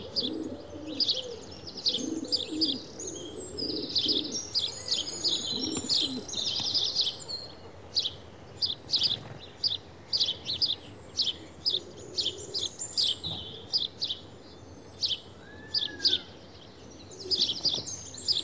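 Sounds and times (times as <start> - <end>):
house sparrow Passer domesticus chatter: 0.0 - 18.4.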